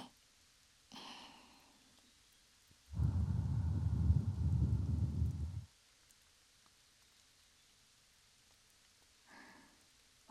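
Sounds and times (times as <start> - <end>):
repeated blowing into ears: 2.9 - 5.7.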